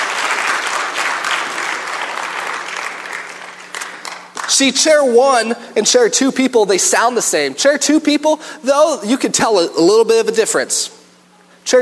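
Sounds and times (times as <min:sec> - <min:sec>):
crowd clapping: 0:00.0 - 0:04.6
speech: 0:04.5 - 0:11.0, 0:11.7 - 0:11.8.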